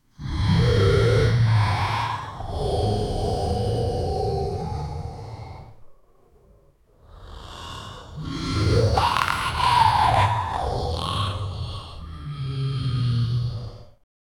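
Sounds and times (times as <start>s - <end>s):
angry beast growling: 0.2s - 14.0s.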